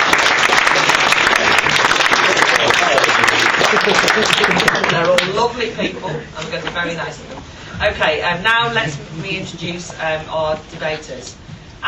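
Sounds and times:
audience applause welcoming judges at a debating event: 0.0s - 5.3s
laughter: 0.7s - 7.0s
speech: 3.9s - 11.8s.

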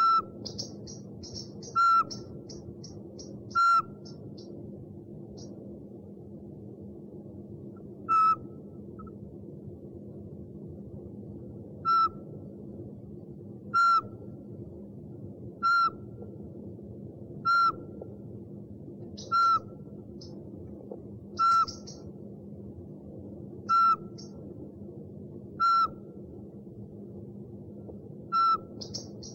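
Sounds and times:
owl hooting: 0.0s - 4.2s, 8.1s - 8.5s, 11.8s - 12.2s, 13.8s - 14.1s, 15.6s - 16.0s, 17.5s - 17.9s, 19.2s - 19.8s, 21.4s - 22.1s.

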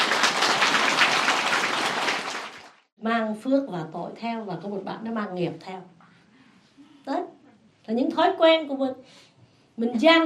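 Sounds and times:
audience applause: 0.0s - 2.9s
speech: 3.1s - 6.0s, 7.1s - 7.3s, 7.9s - 10.2s.

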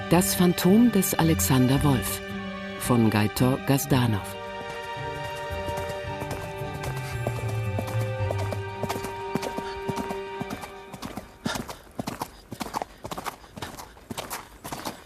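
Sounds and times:
speech: 0.1s - 2.3s, 2.8s - 4.4s
horse hooves clip-clopping on a deserted winding path: 4.5s - 15.0s.

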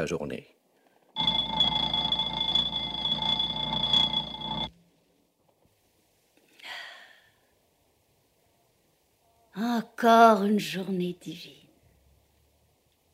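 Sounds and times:
speech: 0.0s - 0.6s, 9.6s - 11.6s
piercing alarm bell ringing: 1.2s - 4.7s.

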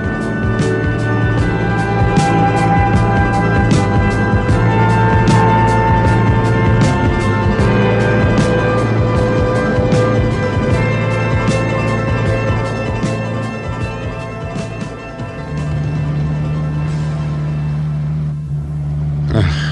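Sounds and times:
car engine droning while driving through a storm to a farm: 0.0s - 19.7s.

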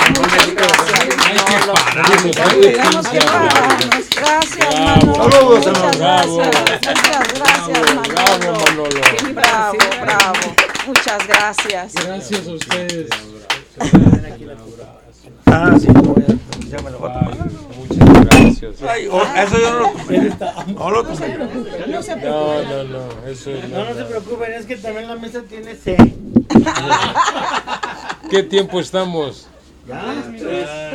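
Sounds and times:
audience applause: 0.0s - 13.6s
speech: 1.6s - 30.9s
laughter: 4.7s - 7.9s, 13.8s - 14.4s, 19.1s - 22.8s, 26.5s - 28.9s.

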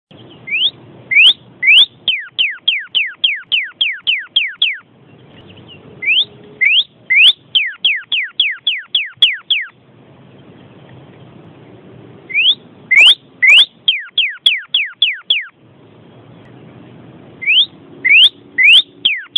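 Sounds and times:
bird singing quick upswept whistled notes: 0.1s - 9.8s, 12.3s - 15.6s, 17.4s - 19.3s.

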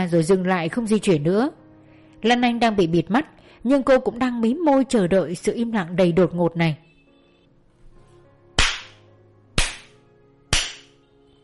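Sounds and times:
speech: 0.0s - 1.6s, 2.2s - 6.8s
hard hand slaps: 8.6s - 9.0s, 9.6s - 11.0s.

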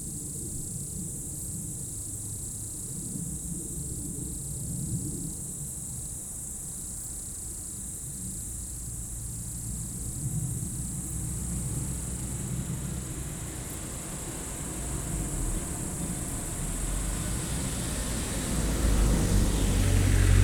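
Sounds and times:
insect chorus trilling in roadside bank and trees at dusk on mountain pass road: 6.3s - 20.4s.

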